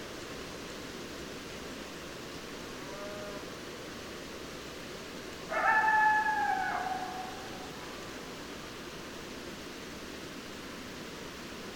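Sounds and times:
coyote howl: 5.5 - 7.8.

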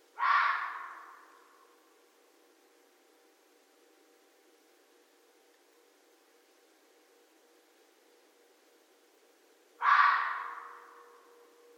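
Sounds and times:
faint low hum: 0.0 - 11.7
red fox screaming: 0.2 - 1.4, 9.8 - 11.3.

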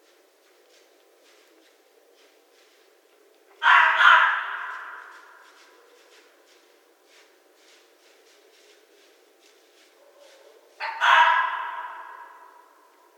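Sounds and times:
North American red fox: 3.5 - 6.3, 9.8 - 12.9.

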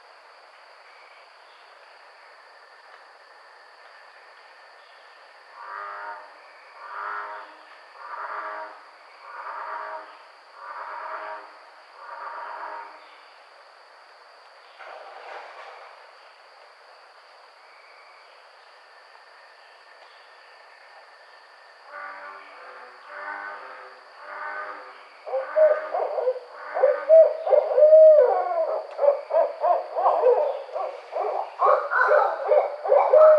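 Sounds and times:
Barred Owl calling: 25.2 - 33.3.

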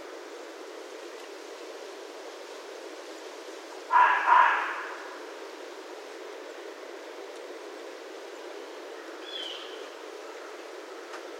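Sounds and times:
low steady hiss: 0.0 - 11.3
red fox barking: 3.9 - 5.2.

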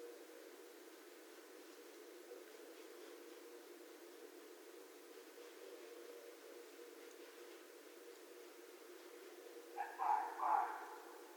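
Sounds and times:
faint background hiss: 0.0 - 11.3
red fox barks, short hoarse yelps: 9.8 - 11.2.

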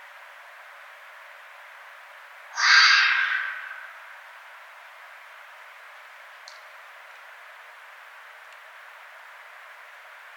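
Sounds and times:
red fox screaming: 2.6 - 4.0.

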